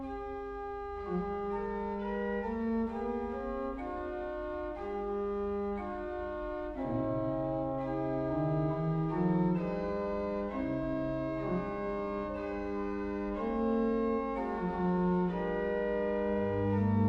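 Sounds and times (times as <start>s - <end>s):
organ fantasia: 0.2s - 17.0s.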